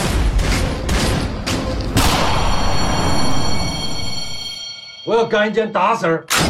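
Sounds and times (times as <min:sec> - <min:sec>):
gunshots in a film scene: 0:00.2 - 0:03.2
speech: 0:05.2 - 0:06.4.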